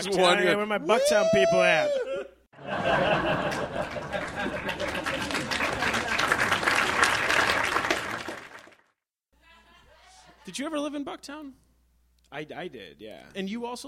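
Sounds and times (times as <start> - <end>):
speech: 0.0 - 5.6, 10.5 - 11.6, 12.3 - 13.8
laughter: 2.1 - 6.2
crowd applause: 2.7 - 8.9.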